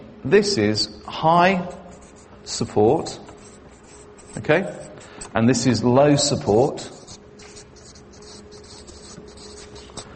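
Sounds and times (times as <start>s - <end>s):
faint steady hum: 0.0s - 10.1s
speech: 0.2s - 1.8s, 2.4s - 3.3s, 4.4s - 7.0s
pen writing on paper: 1.7s - 2.3s, 3.4s - 5.3s, 6.7s - 10.1s.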